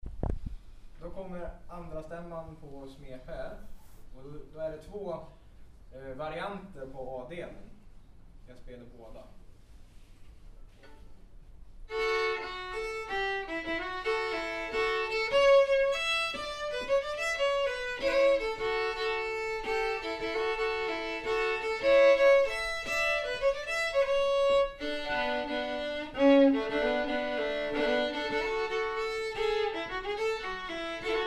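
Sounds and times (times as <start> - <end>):
polska folk dance tune, second voice part: 11.9 - 31.2.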